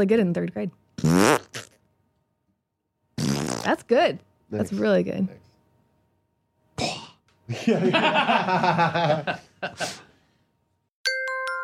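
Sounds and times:
speech: 0.0 - 1.3, 3.6 - 5.5, 6.8 - 10.0
mouth-made fart noise: 1.0 - 1.8, 3.1 - 3.8
laughter: 7.5 - 10.0.

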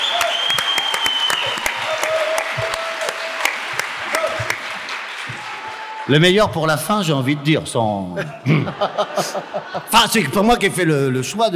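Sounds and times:
audience applause at a real estate industry conference: 0.0 - 6.2
speech: 6.1 - 11.5
laughter: 8.1 - 10.8.

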